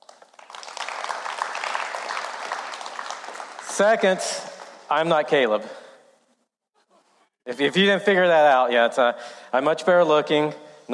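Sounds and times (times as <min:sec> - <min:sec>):
audience applause: 0:00.0 - 0:04.9
speech: 0:03.8 - 0:05.8, 0:07.4 - 0:10.9.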